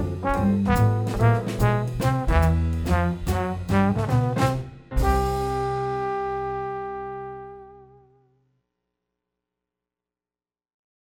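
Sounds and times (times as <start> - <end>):
trombone playing swing: 0.0 - 8.1.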